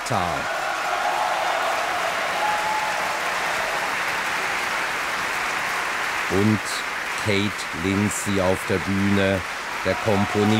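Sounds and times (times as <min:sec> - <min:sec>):
faint cheers: 0:00.0 - 0:04.8, 0:09.7 - 0:10.5
large audience applause: 0:00.0 - 0:10.5
speech: 0:00.1 - 0:00.6, 0:06.3 - 0:10.5.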